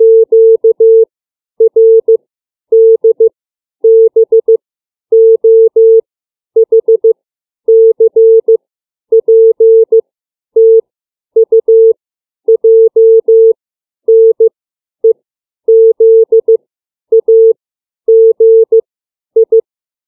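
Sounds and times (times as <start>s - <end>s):
CW Morse code beeps of the alphabet: 0.0s - 1.0s, 1.7s - 2.2s, 2.8s - 3.3s, 3.9s - 4.6s, 5.2s - 6.0s, 6.6s - 8.6s, 9.2s - 10.0s, 10.6s - 10.8s, 11.4s - 11.9s, 12.5s - 13.5s, 14.1s - 14.5s, 15.7s - 17.5s, 18.1s - 18.8s, 19.4s - 19.6s.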